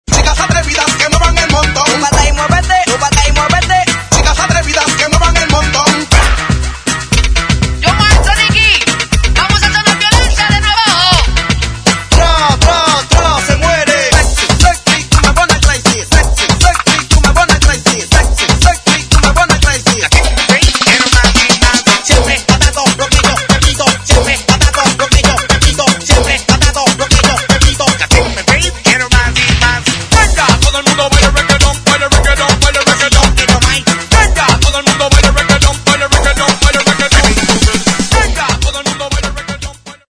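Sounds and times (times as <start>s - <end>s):
reggaeton music: 0.0s - 40.0s.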